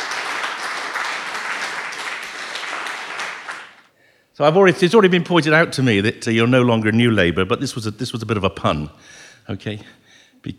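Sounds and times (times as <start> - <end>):
audience applause: 0.0 - 3.9
speech: 4.4 - 10.5.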